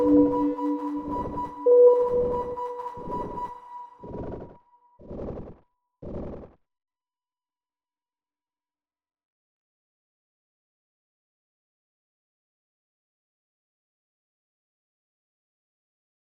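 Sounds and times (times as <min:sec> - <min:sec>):
sine wave tone: 0:00.0 - 0:05.0.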